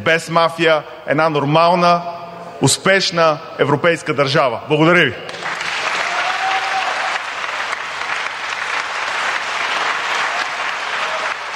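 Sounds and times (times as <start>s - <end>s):
speech: 0.0s - 5.5s
audience applause: 5.3s - 11.5s.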